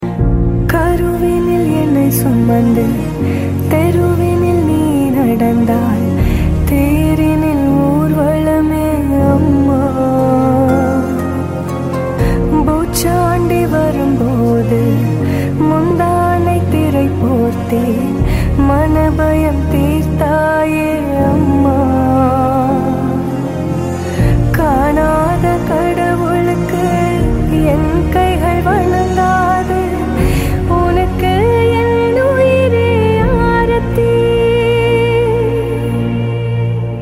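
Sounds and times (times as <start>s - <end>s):
Tamil song: 0.0s - 36.9s.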